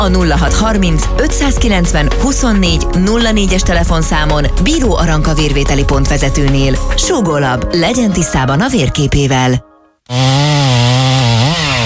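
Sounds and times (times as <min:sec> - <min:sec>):
speech: 0:00.0 - 0:10.9
giant pine tree being cut down in a yard: 0:10.1 - 0:11.8.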